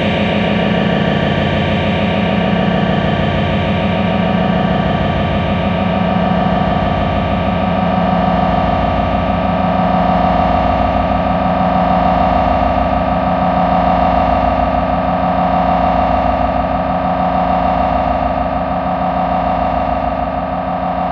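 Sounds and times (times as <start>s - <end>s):
science fiction deep power drone: 0.0s - 21.1s.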